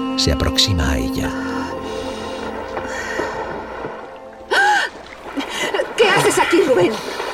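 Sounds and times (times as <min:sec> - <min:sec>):
speech: 0:00.2 - 0:01.5, 0:06.8 - 0:07.1
water splashing as someone bathes in a lagoon: 0:01.8 - 0:07.3.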